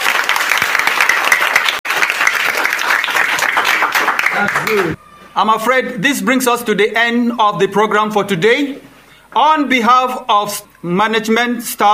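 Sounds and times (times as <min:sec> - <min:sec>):
audience applause: 0:00.0 - 0:05.2
speech: 0:04.4 - 0:11.9.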